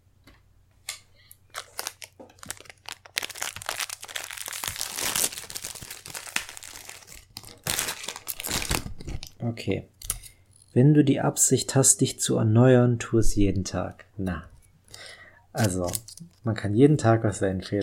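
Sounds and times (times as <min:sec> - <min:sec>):
horse treat packet being opened: 0:01.5 - 0:09.4
speech: 0:09.4 - 0:10.0, 0:10.8 - 0:14.5, 0:15.6 - 0:17.8.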